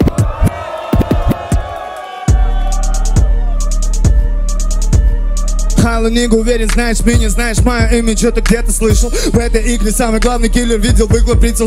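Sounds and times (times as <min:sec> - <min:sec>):
crowd cheering and whooping: 0:00.0 - 0:04.3
hip-hop beat with kick drum and hi-hats: 0:00.0 - 0:11.6
speech: 0:06.0 - 0:11.6.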